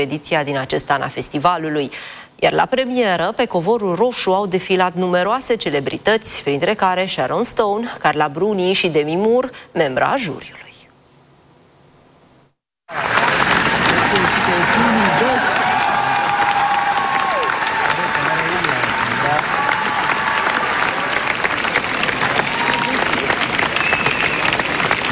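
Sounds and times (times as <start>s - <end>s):
speech: 0.0s - 10.6s
scattered cheers: 12.9s - 25.1s
standing ovation applause after film premiere: 12.9s - 25.1s.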